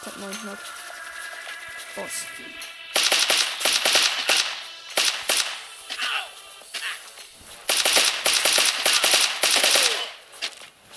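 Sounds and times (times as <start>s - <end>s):
speech: 0.0s - 0.9s, 2.0s - 2.8s
automatic gunfire in a shooter video game: 2.9s - 5.7s, 7.7s - 10.1s.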